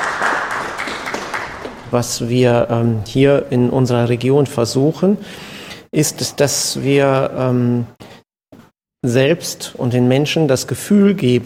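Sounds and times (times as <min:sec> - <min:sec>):
audience applauding at end of service: 0:00.0 - 0:02.0
speech: 0:01.9 - 0:08.0, 0:09.0 - 0:11.4.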